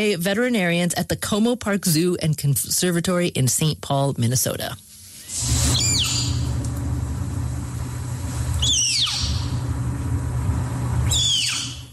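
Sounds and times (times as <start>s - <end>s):
speech: 0.0s - 6.1s
low rumbling hum: 5.2s - 11.9s
snow leopard cub squeaking: 8.6s - 9.4s, 11.1s - 11.8s.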